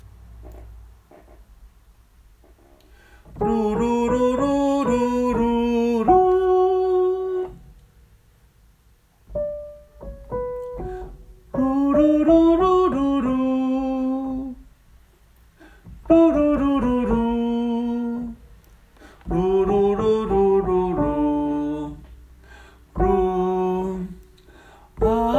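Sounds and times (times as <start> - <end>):
soprano singing: 3.3 - 7.7, 10.7 - 14.7, 16.0 - 18.4, 19.2 - 22.2, 22.9 - 24.4, 25.0 - 25.3.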